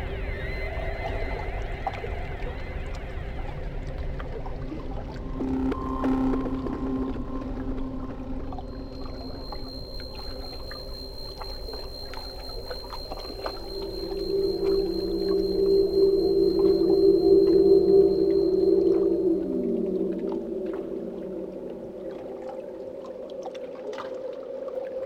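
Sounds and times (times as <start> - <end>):
space ambience: 0.0 - 23.3.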